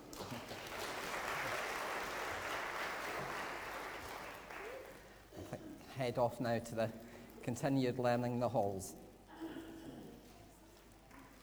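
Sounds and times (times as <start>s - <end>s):
applause for children: 0.0s - 5.2s
speech: 6.0s - 9.0s.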